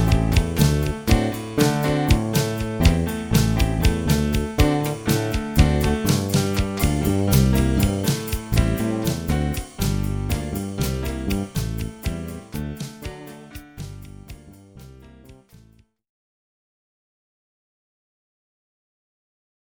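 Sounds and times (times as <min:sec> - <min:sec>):
Latin music in G minor: 0:00.0 - 0:15.6.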